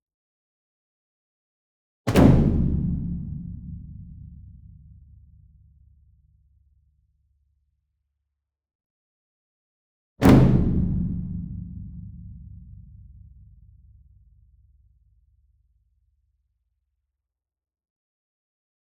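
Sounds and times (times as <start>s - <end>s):
large concert bass drum medium flam: 2.1s - 4.8s, 10.2s - 13.6s.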